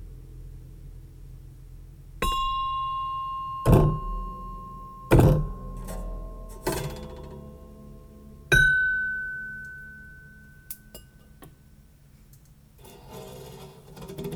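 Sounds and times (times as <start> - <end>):
music box: 2.2 - 11.2.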